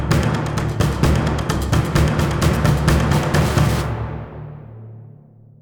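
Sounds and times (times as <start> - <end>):
combat intro music: 0.1 - 5.3.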